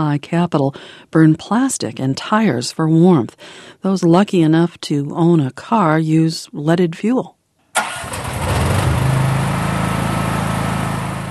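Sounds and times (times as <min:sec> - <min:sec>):
speech: 0:00.0 - 0:08.1
gas-burning generator running: 0:07.8 - 0:11.2.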